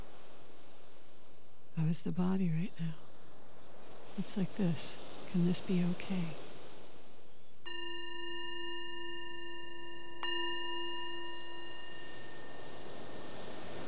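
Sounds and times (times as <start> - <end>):
soft hiss: 0.0 - 13.8
speech: 1.8 - 3.1, 4.2 - 6.4
meditation bell ringing: 7.6 - 13.8.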